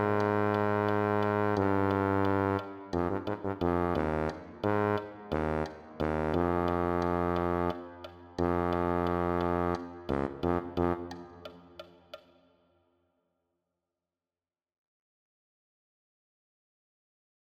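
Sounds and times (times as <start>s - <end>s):
tuba: 0.0s - 11.9s.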